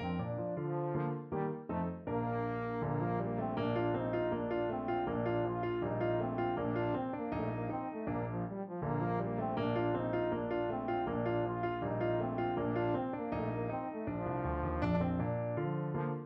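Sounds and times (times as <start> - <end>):
trombone playing baroque dance piece: 0.0 - 16.2.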